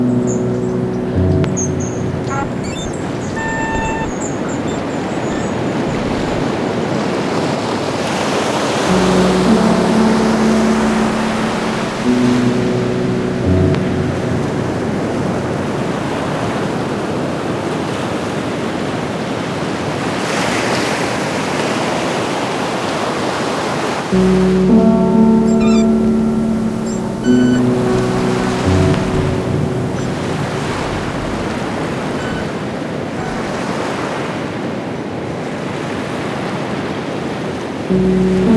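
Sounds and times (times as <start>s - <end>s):
Landes forest ambience: 0.0s - 6.6s, 8.9s - 16.7s, 24.2s - 33.8s
ocean meeting the forest of the Landes: 0.0s - 38.5s.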